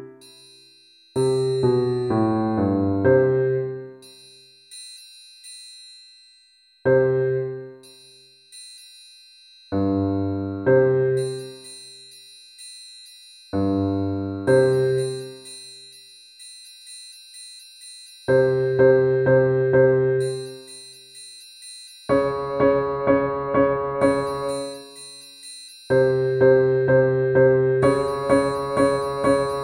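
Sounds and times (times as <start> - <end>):
triangle percussion: 0.0 - 29.6.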